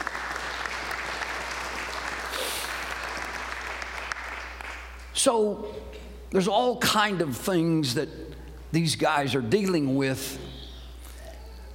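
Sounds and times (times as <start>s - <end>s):
audience applause: 0.0s - 5.0s
speech: 5.2s - 10.5s.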